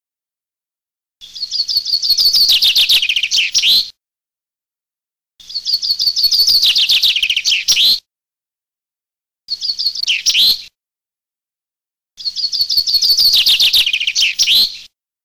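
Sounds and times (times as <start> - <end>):
common chaffinch song: 1.2 - 3.9, 5.4 - 8.1, 9.5 - 10.7, 12.2 - 14.9.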